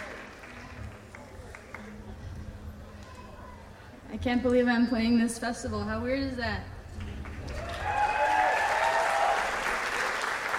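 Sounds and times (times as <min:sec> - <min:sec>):
audience applause: 0:00.0 - 0:02.2, 0:07.0 - 0:10.5
speech: 0:04.1 - 0:06.7.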